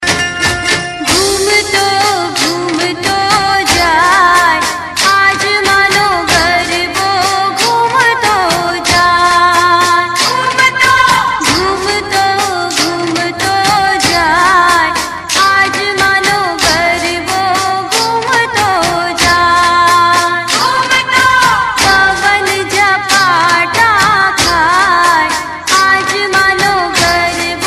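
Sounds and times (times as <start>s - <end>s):
classic garba folk music: 0.0s - 27.6s.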